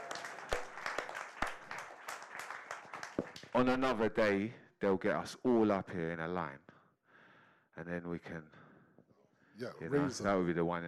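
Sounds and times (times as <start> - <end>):
crowd clapping and cheering at a live event: 0.0 - 3.7
speech: 3.6 - 6.7, 7.8 - 8.6, 9.6 - 10.8.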